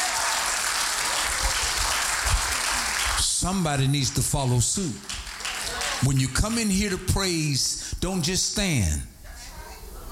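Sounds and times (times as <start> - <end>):
audience clapping hands: 0.0 - 7.0
speech: 3.4 - 5.2, 6.0 - 9.1.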